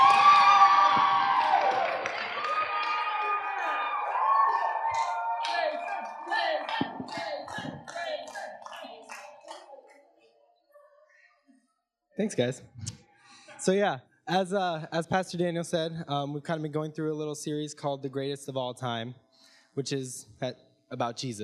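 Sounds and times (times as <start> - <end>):
audience applause and cheering: 0.0 - 9.7
speech: 12.2 - 12.9, 13.6 - 19.2, 19.8 - 21.4.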